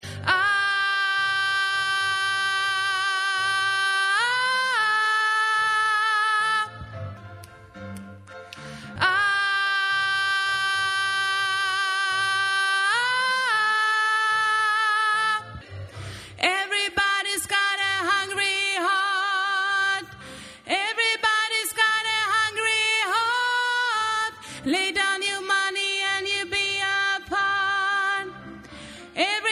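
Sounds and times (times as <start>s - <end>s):
soprano voice: 0.2s - 7.0s, 8.9s - 29.5s.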